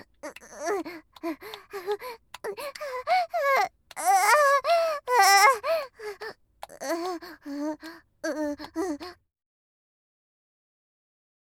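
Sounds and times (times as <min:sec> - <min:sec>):
person moaning: 0:00.0 - 0:09.2.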